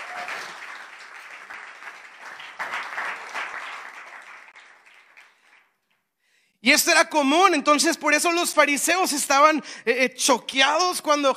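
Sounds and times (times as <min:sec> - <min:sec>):
audience applause: 0:00.0 - 0:05.7
speech: 0:06.6 - 0:11.3.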